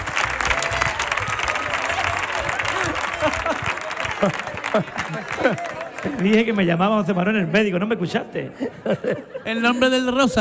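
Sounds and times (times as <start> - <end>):
audience applause: 0.0 - 7.1
laughter: 1.8 - 6.6, 8.4 - 10.3
speech: 4.2 - 10.3.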